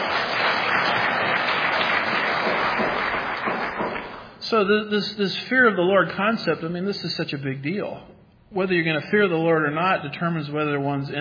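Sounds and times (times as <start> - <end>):
audience clapping: 0.0 - 4.4
speech: 4.5 - 11.1.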